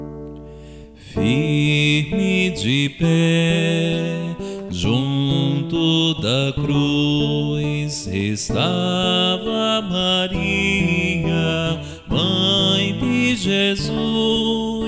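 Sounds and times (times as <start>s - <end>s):
meditative Lent sung refrain: 1.0s - 14.8s.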